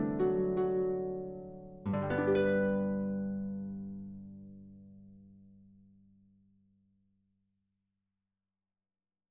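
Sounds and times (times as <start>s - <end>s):
recercada accompaniment music: 0.0s - 4.1s.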